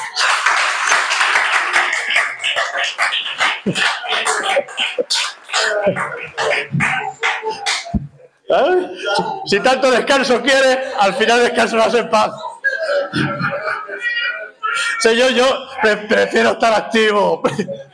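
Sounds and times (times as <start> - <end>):
audience clapping: 0.0 - 8.1
laughter: 0.0 - 16.6, 17.2 - 17.9
speech: 3.7 - 4.0, 8.6 - 12.4, 13.1 - 13.4, 15.0 - 17.8.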